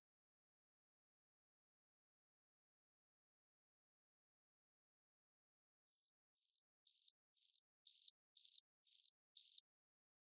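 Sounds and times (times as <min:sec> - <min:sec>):
crickets chirping at Christ the Redeemer: 0:06.0 - 0:09.6.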